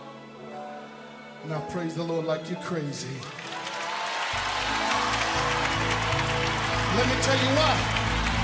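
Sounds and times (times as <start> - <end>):
speech: 1.4 - 3.5, 7.0 - 8.0
people clapping: 3.2 - 8.4.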